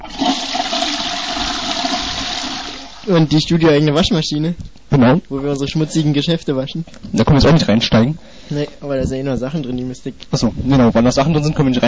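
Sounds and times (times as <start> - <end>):
toilet flushing: 0.0 - 3.3
speech: 3.1 - 11.8.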